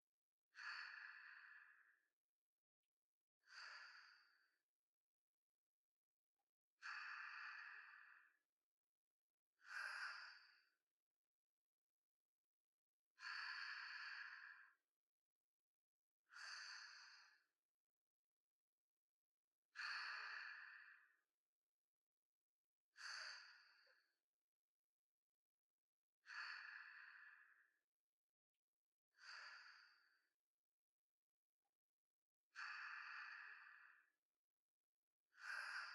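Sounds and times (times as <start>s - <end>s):
sleep breathing ASMR: 0.6s - 2.0s, 3.5s - 4.6s, 6.8s - 8.4s, 9.6s - 10.8s, 13.2s - 14.8s, 16.3s - 17.5s, 19.8s - 21.2s, 23.0s - 24.1s, 26.3s - 27.8s, 29.1s - 30.3s, 32.6s - 34.2s, 35.4s - 35.9s.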